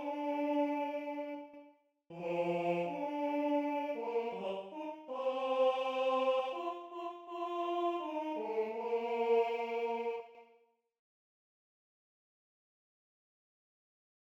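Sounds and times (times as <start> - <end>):
tenor voice singing a Kyrie: 0.0 - 10.4.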